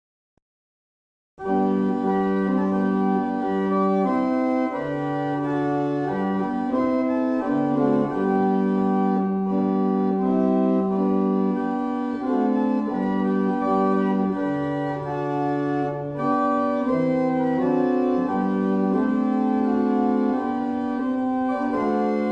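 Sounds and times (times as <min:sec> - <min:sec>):
barrel organ: 0:01.4 - 0:22.3.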